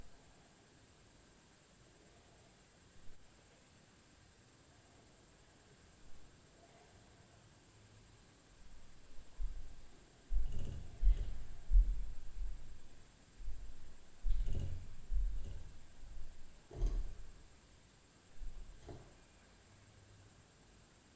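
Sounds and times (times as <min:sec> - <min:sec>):
low-frequency upstairs noise at night: 0:00.0 - 0:21.1
tapping knocks at night: 0:08.7 - 0:17.5, 0:18.4 - 0:19.2.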